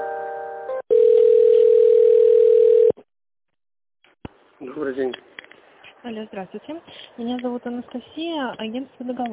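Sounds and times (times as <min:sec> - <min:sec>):
telephone line hold tone: 0:00.9 - 0:03.0
speech: 0:06.1 - 0:09.3.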